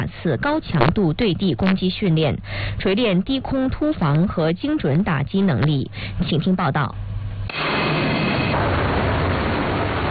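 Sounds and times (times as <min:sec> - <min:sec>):
speech: 0:00.2 - 0:08.2
fighter jet engines roaring: 0:07.5 - 0:10.1.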